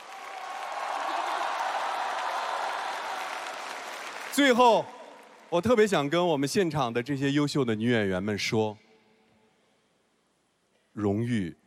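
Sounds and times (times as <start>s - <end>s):
audience applause: 0.0s - 5.5s
speech: 4.4s - 8.8s, 11.0s - 11.6s.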